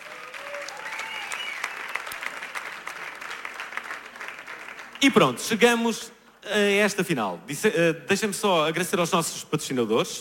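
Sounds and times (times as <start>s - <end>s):
audience applause: 0.0s - 5.3s
speech: 5.0s - 10.2s.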